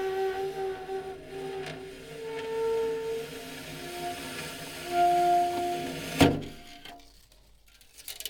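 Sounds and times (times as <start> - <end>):
cooling unit running at the back: 0.1 - 6.7.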